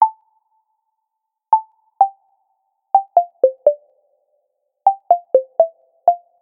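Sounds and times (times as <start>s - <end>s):
Samsung phone ringtone melody: 3.0s - 3.7s, 4.9s - 6.2s.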